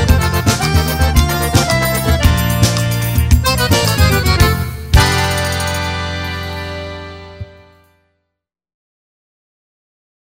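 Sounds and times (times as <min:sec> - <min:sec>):
instrumental forro music: 0:00.0 - 0:08.0.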